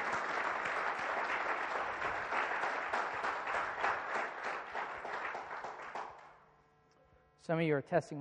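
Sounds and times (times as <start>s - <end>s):
audience applause: 0.0s - 6.3s
speech: 7.5s - 8.1s.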